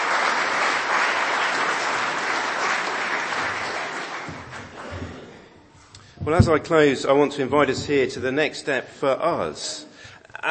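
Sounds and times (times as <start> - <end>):
audience round of applause: 0.0 - 5.4
speech: 6.3 - 9.9.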